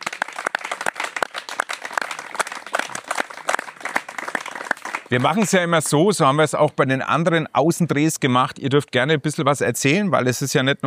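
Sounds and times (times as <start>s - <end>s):
crowd applauding: 0.0s - 5.8s
speech: 5.1s - 10.8s.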